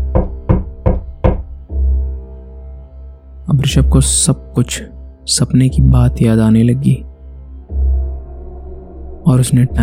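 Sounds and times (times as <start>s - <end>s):
knocking on a door: 0.1s - 1.6s
speech: 3.7s - 7.1s, 9.2s - 9.8s.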